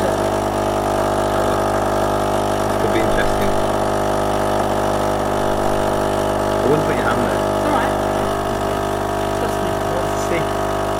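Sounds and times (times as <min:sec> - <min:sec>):
coffee machine pump humming: 0:00.0 - 0:10.9.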